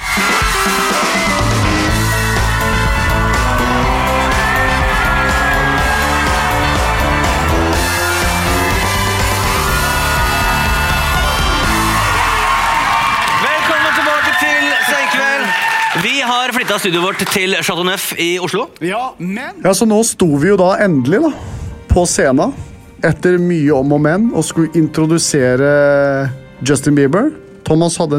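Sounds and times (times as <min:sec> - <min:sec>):
audience cheering and whooping in welcome: 0:00.0 - 0:17.3
speech: 0:16.7 - 0:28.1.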